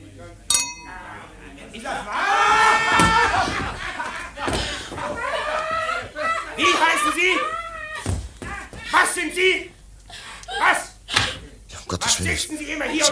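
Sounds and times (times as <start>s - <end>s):
glasses clinking in a toast: 0.5s - 1.1s
laughter: 1.7s - 9.2s, 10.1s - 13.1s.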